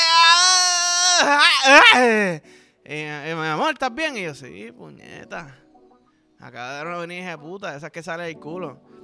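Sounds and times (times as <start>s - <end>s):
woman moaning on an eee vowel: 0.0s - 2.4s
speech: 1.2s - 5.6s, 6.4s - 8.9s.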